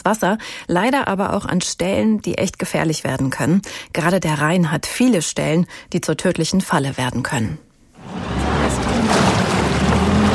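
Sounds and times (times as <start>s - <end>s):
speech: 0.0s - 8.4s
DLRG Rheinfelden rescue motorboat speeding over the Rhine: 8.0s - 10.3s.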